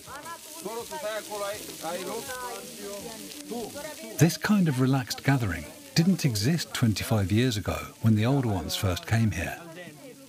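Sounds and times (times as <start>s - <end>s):
mici Romanian barbecue dish sizzling on a griddle: 0.0s - 10.2s
speech: 0.6s - 9.7s.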